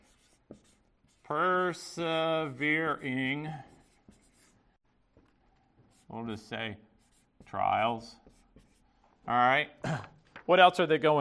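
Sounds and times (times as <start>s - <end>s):
pen scratching across paper during handwriting: 0.0s - 2.0s, 2.9s - 4.6s, 5.8s - 8.9s
speech: 1.3s - 3.7s, 6.1s - 6.9s, 7.5s - 8.2s, 9.3s - 11.1s.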